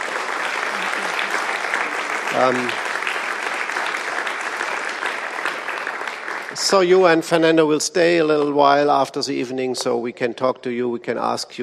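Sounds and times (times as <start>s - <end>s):
audience applause: 0.0s - 8.1s
speech: 2.3s - 2.8s, 6.6s - 11.6s.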